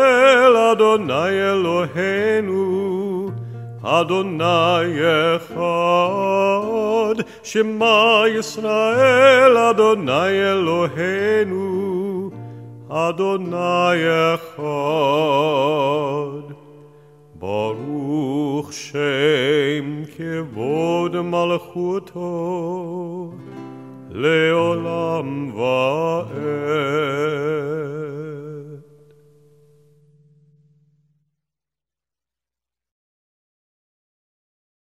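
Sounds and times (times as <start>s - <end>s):
person singing a prayer: 0.0s - 12.3s, 12.9s - 16.7s, 17.4s - 23.4s, 24.1s - 28.8s.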